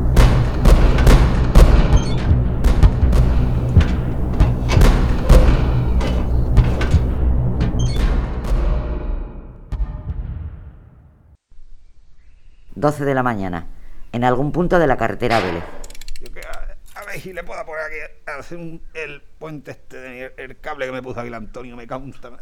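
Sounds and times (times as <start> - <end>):
radio drama gunfire aimed at fleeing people in a Spanish Civil War scene: 0.0 - 7.2
constant rumbling bed: 0.0 - 8.5
speech: 12.8 - 15.8, 17.2 - 22.4.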